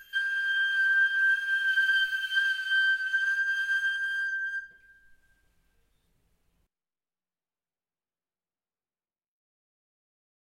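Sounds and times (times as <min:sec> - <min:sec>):
flauto osso bone flute: 0:00.0 - 0:06.1.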